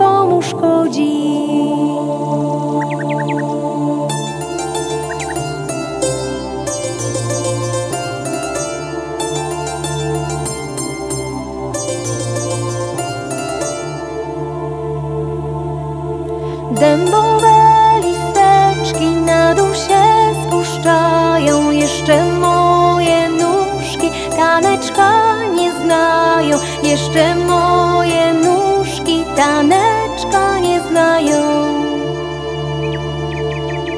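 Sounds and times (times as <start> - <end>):
vocal version of a song: 0.0 - 33.9.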